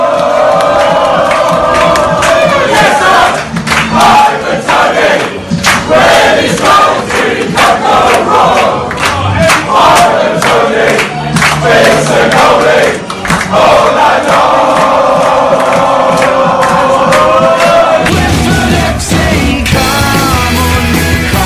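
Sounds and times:
crowd cheering and shouting: 0.0s - 5.2s, 5.9s - 21.4s.

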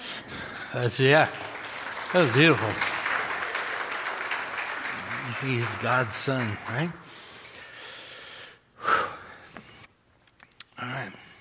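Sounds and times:
small group of people clapping: 0.3s - 7.4s
speech: 0.7s - 1.4s, 2.1s - 2.9s, 5.3s - 7.2s.

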